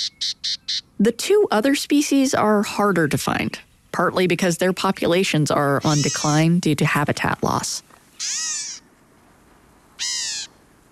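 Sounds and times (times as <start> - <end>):
Black-capped Gnatcatcher mewing call: 0.0 - 0.9, 5.8 - 6.4, 8.1 - 8.9, 10.0 - 10.6
speech: 1.0 - 8.5.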